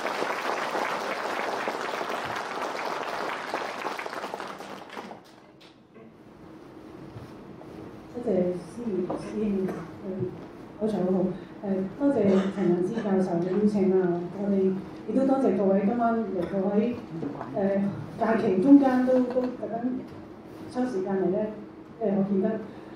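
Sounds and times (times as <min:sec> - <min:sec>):
audience applause: 0:00.0 - 0:05.5
speech: 0:08.2 - 0:22.8.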